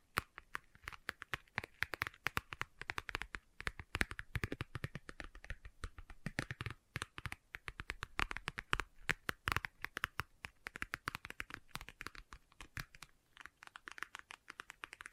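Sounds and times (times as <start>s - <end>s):
fingers tapping and scratching on leather: 0.0s - 15.1s.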